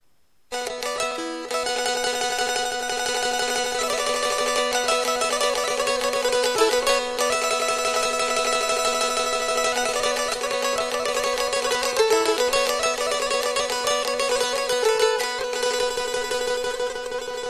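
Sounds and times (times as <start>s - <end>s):
ciftelia: 0.5s - 17.4s.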